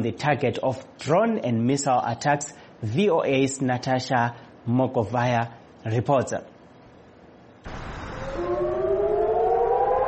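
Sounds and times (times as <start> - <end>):
speech: 0.0 - 6.5
rocket attack warning siren in Eilat: 7.7 - 10.0.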